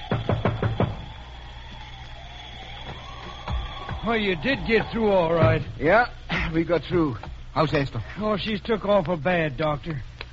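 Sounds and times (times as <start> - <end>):
knocking on a door: 0.1 - 1.0
speech: 4.0 - 10.1.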